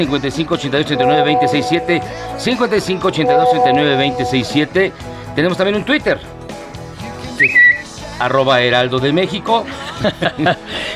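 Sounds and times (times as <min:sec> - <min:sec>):
speech: 0:00.0 - 0:06.4, 0:07.4 - 0:07.6, 0:08.2 - 0:10.9
high bird-like whistle sound effect: 0:07.4 - 0:07.9
laughter: 0:09.7 - 0:10.9.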